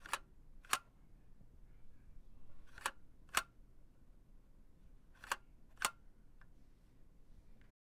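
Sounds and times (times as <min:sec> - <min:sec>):
old camera shutter click: 0:00.0 - 0:00.9, 0:02.7 - 0:03.6, 0:05.2 - 0:06.0.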